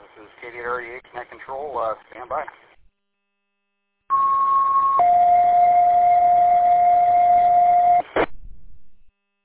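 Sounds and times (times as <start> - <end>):
speech: 0.2 - 2.7
radio net activation alert tone: 4.1 - 8.0.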